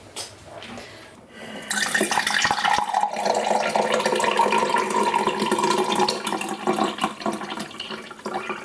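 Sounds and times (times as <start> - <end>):
iced tea pouring into a glass: 1.7 - 8.6.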